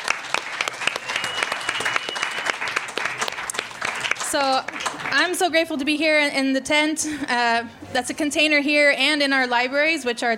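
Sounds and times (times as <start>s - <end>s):
audience applause: 0.0s - 5.3s
speech: 4.3s - 10.3s.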